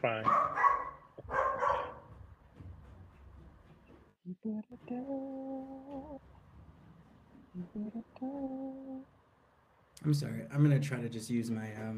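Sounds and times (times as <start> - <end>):
speech: 0.0 - 0.5, 4.4 - 6.3, 7.6 - 9.2, 10.0 - 11.9
dog barking: 0.2 - 2.2.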